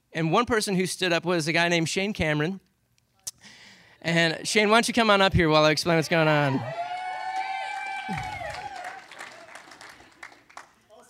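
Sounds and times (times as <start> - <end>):
speech: 0.2 - 2.7, 4.0 - 6.9, 8.1 - 8.3
audience clapping: 6.5 - 11.0.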